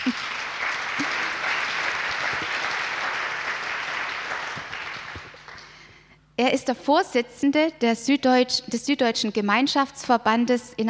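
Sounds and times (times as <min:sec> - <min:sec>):
speech: 0:00.0 - 0:00.4, 0:06.4 - 0:10.8
audience applause: 0:00.0 - 0:05.8.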